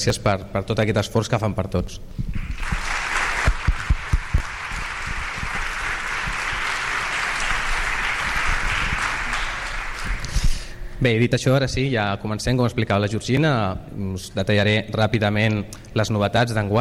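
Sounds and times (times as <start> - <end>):
speech: 0.0 - 2.8, 11.0 - 16.7
audience applause: 2.4 - 10.4.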